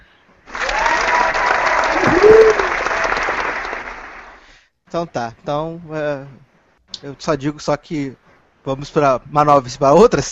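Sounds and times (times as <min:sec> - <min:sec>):
applause: 0:00.5 - 0:04.6
speech: 0:04.9 - 0:10.3.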